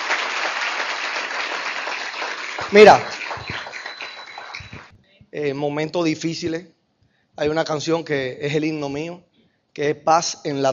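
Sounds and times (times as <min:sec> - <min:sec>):
audience applause for an e-commerce team: 0:00.0 - 0:04.9
speech: 0:02.7 - 0:03.1, 0:05.4 - 0:06.8, 0:07.4 - 0:10.7.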